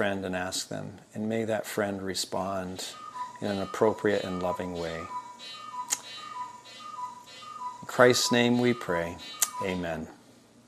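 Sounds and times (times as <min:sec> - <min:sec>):
speech: 0:00.0 - 0:05.6, 0:07.9 - 0:10.2
cuckoo clock: 0:02.4 - 0:10.1.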